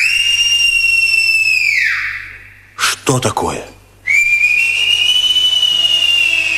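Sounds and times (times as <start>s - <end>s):
human whistling imitating birdsong: 0.0s - 2.4s, 4.0s - 6.5s
speech: 3.1s - 3.8s.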